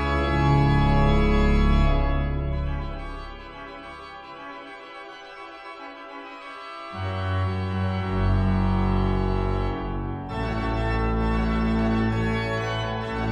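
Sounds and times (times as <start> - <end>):
organ fanfare: 0.0 - 4.1, 7.0 - 13.2.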